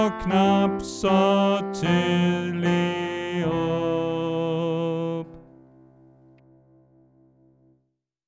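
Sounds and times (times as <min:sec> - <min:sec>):
tenor singing: 0:00.0 - 0:05.6.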